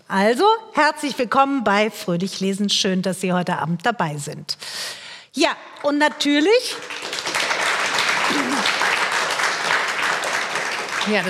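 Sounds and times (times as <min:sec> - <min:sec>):
speech: 0:00.1 - 0:07.1, 0:08.3 - 0:08.8, 0:11.1 - 0:11.2
audience applause: 0:06.8 - 0:11.2.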